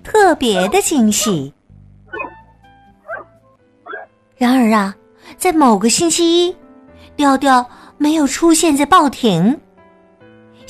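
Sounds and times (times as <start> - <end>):
speech: 0.0 - 1.6, 4.4 - 6.6, 7.2 - 9.6
steady low hum: 0.0 - 8.0
puppy barking: 0.5 - 1.5, 2.1 - 2.4, 3.0 - 4.1.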